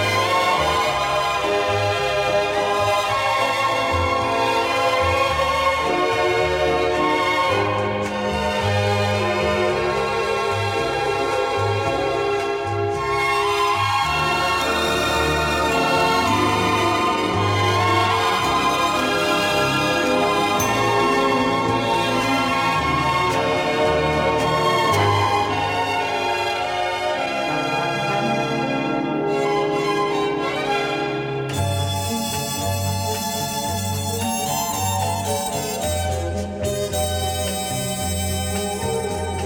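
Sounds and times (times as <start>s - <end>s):
string orchestra: 0.0s - 39.4s.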